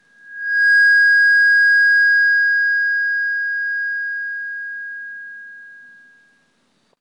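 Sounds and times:
short low microphone feedback: 0:00.0 - 0:06.6.

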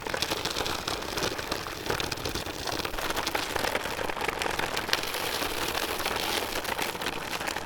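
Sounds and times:
wheels on dirt road: 0:00.0 - 0:07.6.

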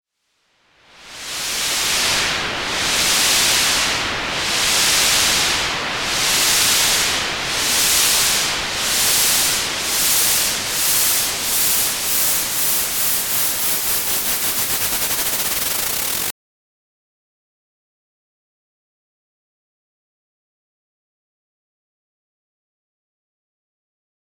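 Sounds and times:
white noise: 0:00.6 - 0:16.3.

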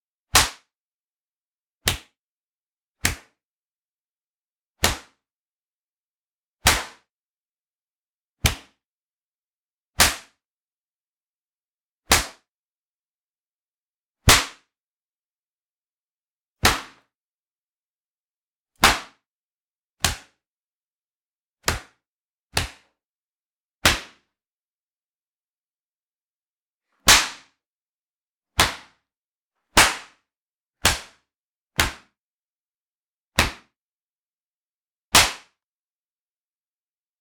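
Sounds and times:
brutal slaps: 0:00.4 - 0:00.7, 0:01.9 - 0:02.1, 0:03.0 - 0:03.4, 0:04.8 - 0:05.2, 0:06.7 - 0:07.1, 0:08.4 - 0:08.7, 0:14.3 - 0:14.7, 0:16.6 - 0:17.0, 0:18.8 - 0:19.2, 0:20.0 - 0:20.3, 0:21.6 - 0:21.9, 0:22.6 - 0:22.9, 0:27.0 - 0:27.5, 0:28.6 - 0:28.9, 0:29.8 - 0:30.1, 0:30.8 - 0:31.2, 0:33.4 - 0:33.7, 0:35.1 - 0:35.6.

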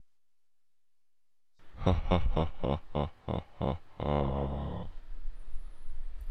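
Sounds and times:
deep laugh: 0:01.7 - 0:05.0.

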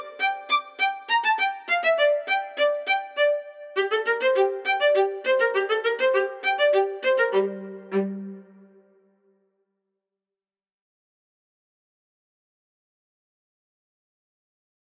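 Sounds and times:
orchestral score violin solo: 0:00.0 - 0:08.9.

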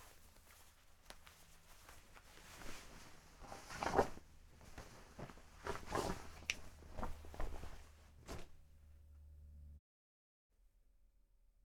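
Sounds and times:
clothing rustling: 0:00.0 - 0:09.0.

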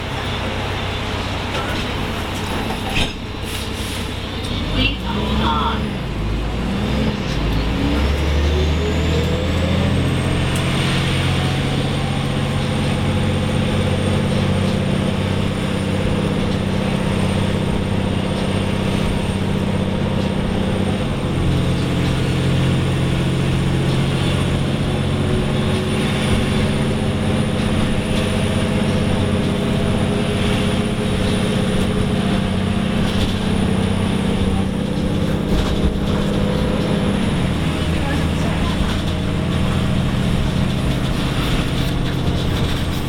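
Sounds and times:
Muni bus: 0:00.0 - 0:43.0.

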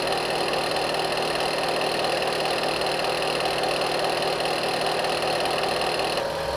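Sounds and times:
turbine: 0:00.0 - 0:06.4.

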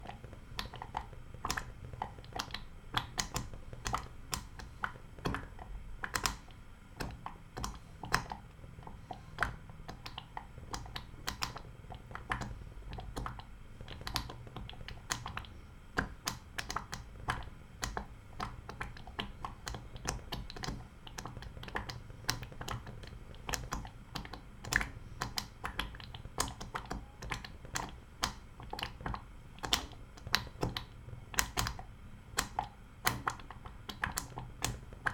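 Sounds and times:
cornstarch simmering on gas: 0:00.0 - 0:35.1.

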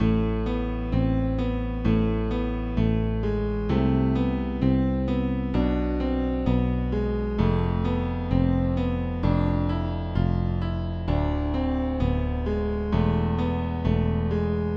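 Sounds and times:
piano bass melody loop: 0:00.0 - 0:14.7.

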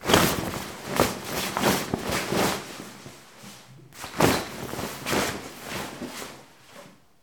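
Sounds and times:
textile swishing: 0:00.0 - 0:06.9.

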